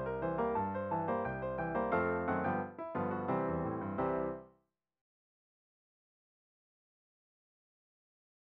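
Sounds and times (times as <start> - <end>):
piano: 0.0 - 4.5.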